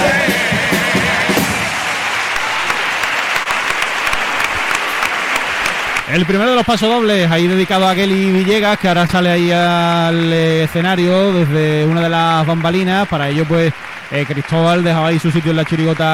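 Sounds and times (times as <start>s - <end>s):
audience applause: 0.2s - 16.1s
speech: 6.1s - 16.1s.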